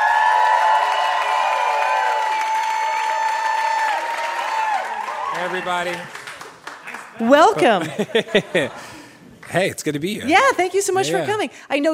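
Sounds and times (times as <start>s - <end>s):
audience applause and cheering for a special guest: 0.0s - 8.1s
speech: 5.4s - 6.2s, 7.2s - 8.8s, 9.5s - 11.9s
laughter: 6.8s - 9.2s.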